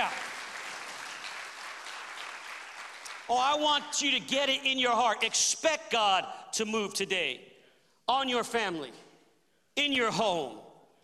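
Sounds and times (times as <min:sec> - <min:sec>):
audience clapping hands: 0:00.0 - 0:03.6
speech: 0:03.3 - 0:07.5, 0:08.1 - 0:09.0, 0:09.8 - 0:10.6.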